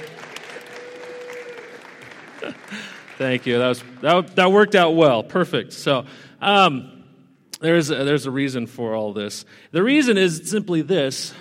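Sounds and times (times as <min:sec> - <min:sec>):
audience round of applause: 0:00.0 - 0:04.3
speech: 0:02.4 - 0:07.0, 0:07.6 - 0:11.3.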